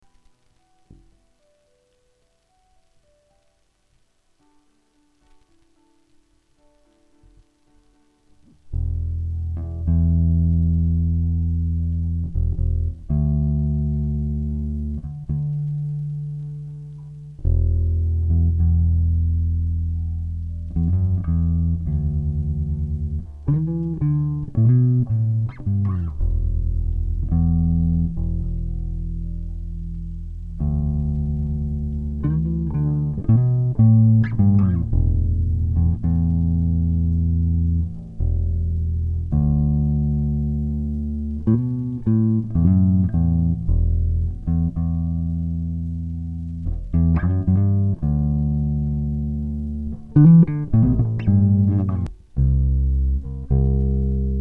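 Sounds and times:
bass: 6.6 - 54.3.

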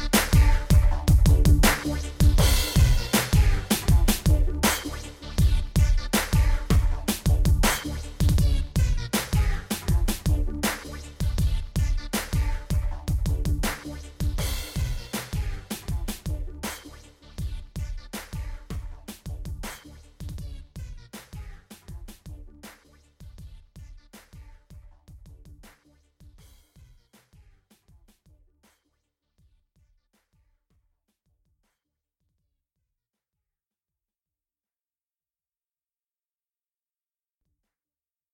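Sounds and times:
drum and bass music mix: 0.0 - 29.9.

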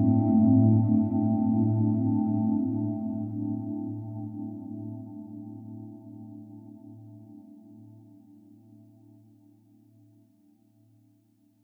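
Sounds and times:
ambient synth pad: 0.0 - 7.1.

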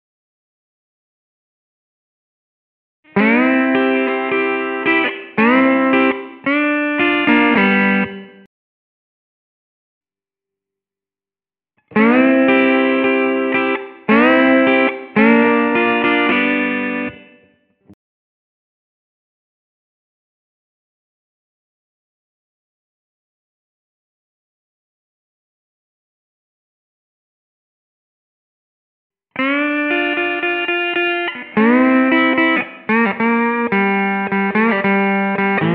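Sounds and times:
slide guitar in G at 110 BPM: 3.1 - 8.4, 11.9 - 17.4, 29.4 - 35.7.

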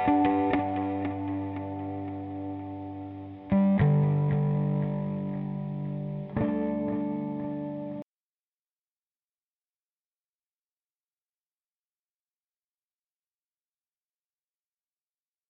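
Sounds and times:
guitar improvisation in G: 0.0 - 8.0.

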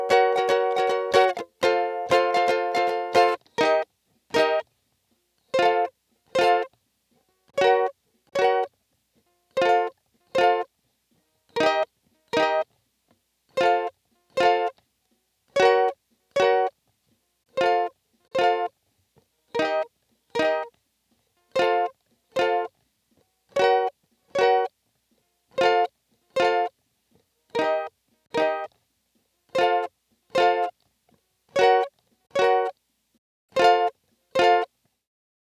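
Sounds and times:
groovy ukulele: 0.0 - 4.7, 5.5 - 6.7, 7.6 - 8.8, 9.5 - 10.7, 11.5 - 12.7, 13.6 - 14.8, 15.6 - 16.8, 17.6 - 18.8, 19.5 - 20.7, 21.5 - 22.7, 23.6 - 24.8, 25.6 - 26.8, 27.5 - 28.8, 29.5 - 30.8, 31.6 - 32.8, 33.6 - 34.7.

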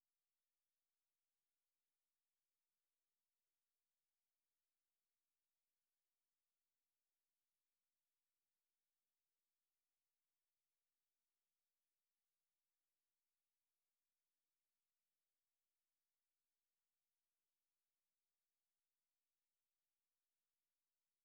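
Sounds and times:
sine wave tones: 0.0 - 21.2.

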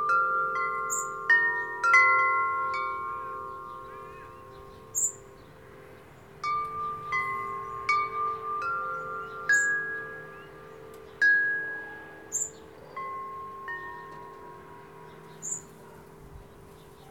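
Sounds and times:
wind chimes: 0.0 - 17.0
local traffic: 2.0 - 17.0
dog barking: 15.8 - 16.2.

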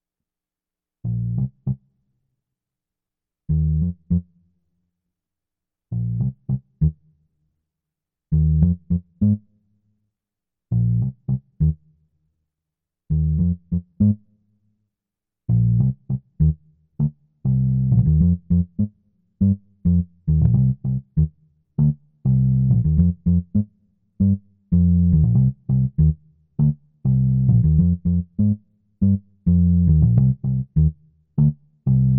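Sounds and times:
bass: 1.0 - 2.0, 3.5 - 4.6, 5.9 - 7.2, 8.3 - 9.8, 10.7 - 12.0, 13.1 - 14.5, 15.5 - 32.1.

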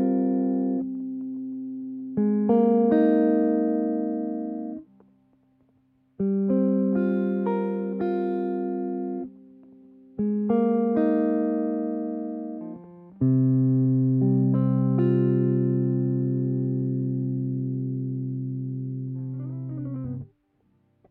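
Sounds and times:
solo electric guitar chords in C: 0.0 - 5.0, 6.2 - 20.3.

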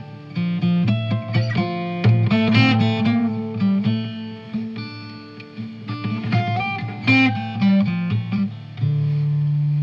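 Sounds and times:
guitar and percussion groove: 0.0 - 9.8.

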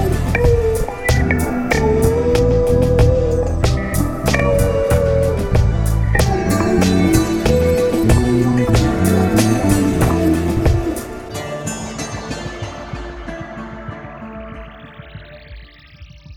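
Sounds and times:
jazzy groove: 0.0 - 11.4.

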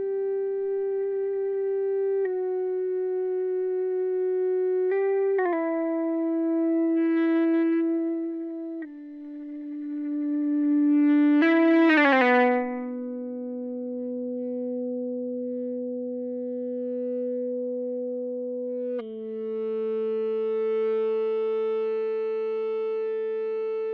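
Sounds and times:
dry Ebow guitar tone on Em7: 0.0 - 23.9.

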